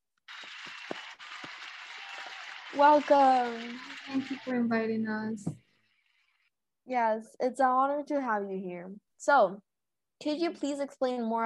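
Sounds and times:
audience applause: 0:00.3 - 0:05.0
speech: 0:02.7 - 0:05.6, 0:06.9 - 0:11.4.

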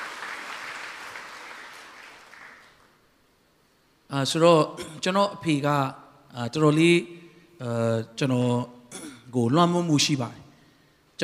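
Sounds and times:
congregation applauding in church: 0:00.0 - 0:03.0
speech: 0:04.1 - 0:10.4.

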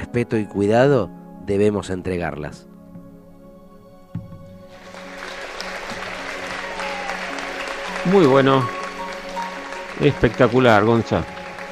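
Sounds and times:
speech: 0:00.1 - 0:02.7, 0:08.0 - 0:08.8, 0:10.0 - 0:11.4
audience applause: 0:04.7 - 0:11.6.

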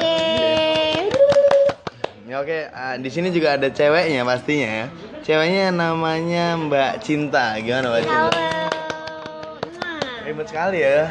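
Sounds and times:
hand clapping: 0:00.0 - 0:02.2, 0:08.0 - 0:10.1
speech: 0:02.4 - 0:08.6, 0:10.3 - 0:11.0.

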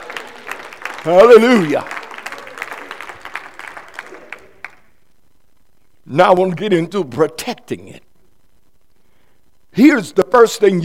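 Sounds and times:
audience clapping hands: 0:00.0 - 0:05.0
speech: 0:01.0 - 0:02.0, 0:06.1 - 0:08.1, 0:09.8 - 0:10.8.

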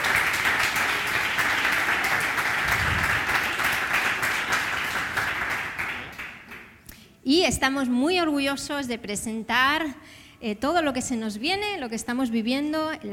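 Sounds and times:
audience applause: 0:00.0 - 0:06.6
speech: 0:07.3 - 0:13.1.

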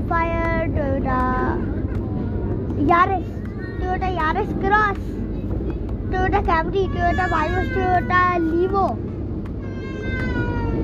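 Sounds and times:
low rumbling background: 0:00.0 - 0:10.8
speech: 0:02.8 - 0:03.3, 0:04.0 - 0:05.2, 0:06.1 - 0:09.1
baby crying: 0:06.9 - 0:08.2, 0:09.6 - 0:10.8.

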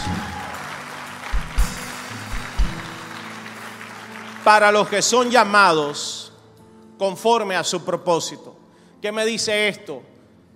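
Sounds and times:
audience applause: 0:00.0 - 0:05.6
speech: 0:04.5 - 0:06.2, 0:07.0 - 0:10.1.

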